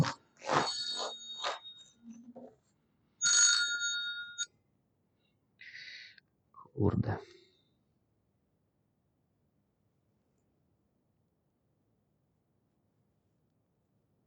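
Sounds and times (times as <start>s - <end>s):
electronic phone ringtone: 0.5s - 2.2s, 3.2s - 4.5s
speech: 6.8s - 7.4s.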